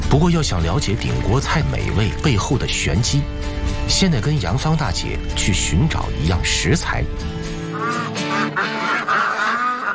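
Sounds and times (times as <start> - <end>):
speech: 0.1 - 8.8
geese honking: 7.6 - 9.9.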